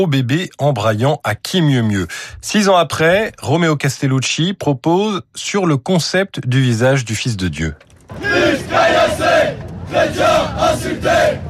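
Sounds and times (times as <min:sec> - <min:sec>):
speech: 0:00.0 - 0:11.4
crowd of protesters shouting: 0:08.1 - 0:11.4.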